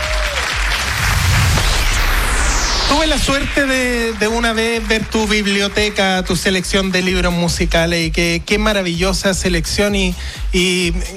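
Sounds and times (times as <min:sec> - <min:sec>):
audience applause at an awards ceremony for books about music: 0:00.0 - 0:01.8, 0:03.0 - 0:06.9
speech: 0:02.9 - 0:11.1.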